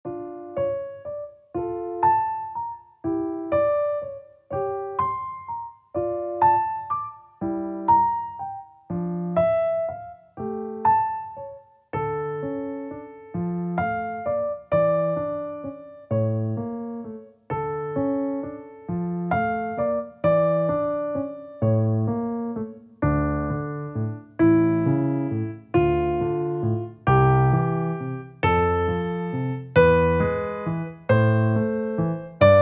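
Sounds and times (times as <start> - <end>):
requiem mass piece on piano: 0.0 - 32.6.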